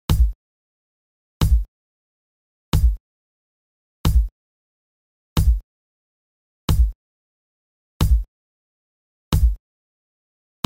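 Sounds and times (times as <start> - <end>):
kick drum: 0.0 - 0.4, 1.4 - 1.7, 2.7 - 3.0, 4.1 - 4.3, 5.4 - 5.6, 6.7 - 7.0, 8.0 - 8.3, 9.3 - 9.6.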